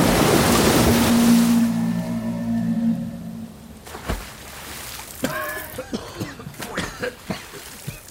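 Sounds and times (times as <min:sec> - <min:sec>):
low droning hum: 0:00.0 - 0:04.4
roaring river floodwater rushing: 0:00.0 - 0:08.0
water splashing: 0:00.0 - 0:08.0
wavering cries: 0:00.9 - 0:03.8.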